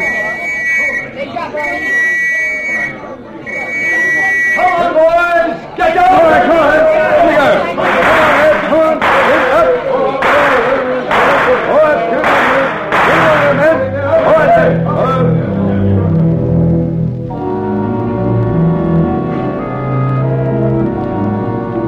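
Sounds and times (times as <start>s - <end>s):
shrill steady whistle-like tones: 0.0s - 4.9s
agitated crowd murmuring and shouting in a street: 0.0s - 21.8s.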